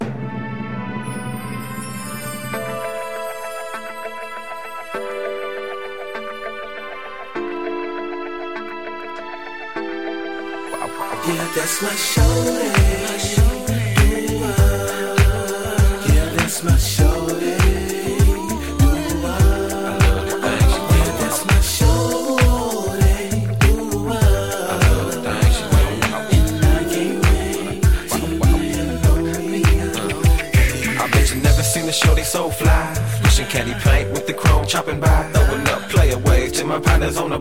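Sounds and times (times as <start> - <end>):
doo wop singing: 11.1 - 37.3.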